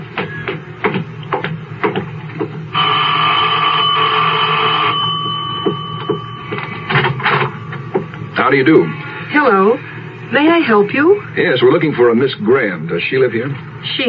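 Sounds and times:
electric doorbell buzzing: 2.7 - 7.9
speech: 8.5 - 14.0.

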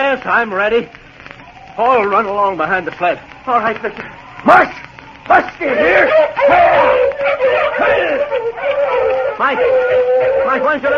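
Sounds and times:
speech: 0.1 - 1.0, 1.8 - 10.9
pack of sled dogs barking and yipping: 5.7 - 10.9.

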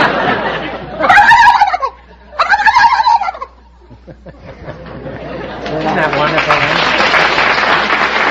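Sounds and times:
laughter: 0.0 - 2.4, 3.4 - 8.2
person imitating turkey gobble: 1.0 - 3.6.

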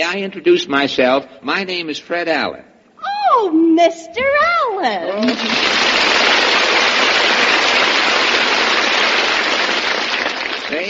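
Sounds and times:
speech: 0.0 - 2.7, 3.3 - 6.4
neighbors applauding: 5.2 - 10.8.

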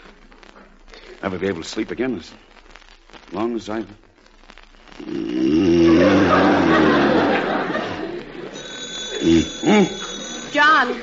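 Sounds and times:
speech: 1.2 - 2.6, 3.3 - 4.1, 9.2 - 11.0
laughter: 5.6 - 11.0
telephone bell ringing: 8.5 - 11.0.

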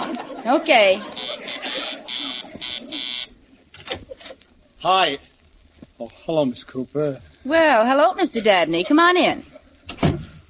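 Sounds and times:
laughter: 0.0 - 3.3, 8.0 - 9.8
speech: 0.4 - 2.2, 4.8 - 5.3, 6.0 - 9.5
door buzzer: 1.2 - 3.4.

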